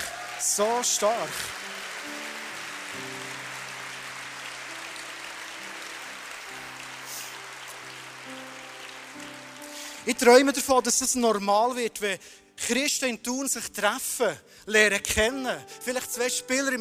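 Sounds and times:
audience applause: 0:00.0 - 0:11.0
soft sustained music tones: 0:00.0 - 0:16.7
speech: 0:00.6 - 0:01.6, 0:10.1 - 0:16.7.

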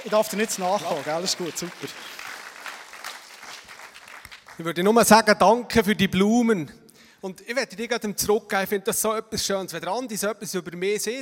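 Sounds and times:
speech: 0:00.0 - 0:02.2, 0:04.6 - 0:11.2
audience applause: 0:00.0 - 0:04.6.

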